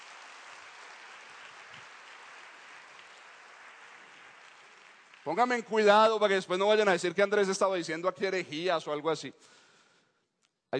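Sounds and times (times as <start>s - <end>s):
audience applause: 0.0s - 6.2s
speech: 5.2s - 9.6s.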